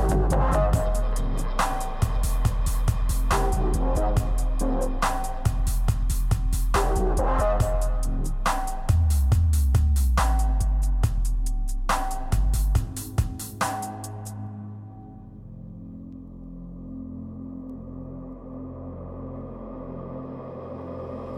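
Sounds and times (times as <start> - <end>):
deep dark dubstep: 0.0 - 14.4.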